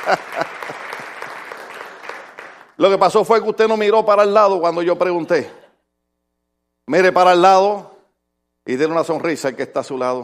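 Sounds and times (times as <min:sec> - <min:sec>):
speech: 0:00.0 - 0:00.8, 0:02.8 - 0:05.6, 0:06.9 - 0:07.9, 0:08.7 - 0:10.2
laughter: 0:00.0 - 0:01.3
audience applause: 0:00.0 - 0:02.8.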